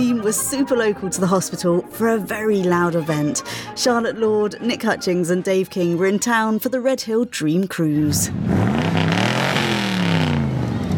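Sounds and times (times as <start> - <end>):
speech: 0.0 - 8.8
1981 DeLorean DMC-12 engine running at the Red Hill Dream Cruise: 8.2 - 10.9.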